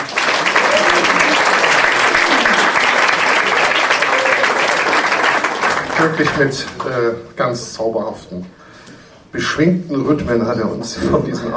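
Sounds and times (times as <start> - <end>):
audience applause: 0.0 - 7.0
speech: 6.0 - 8.6, 9.3 - 11.5.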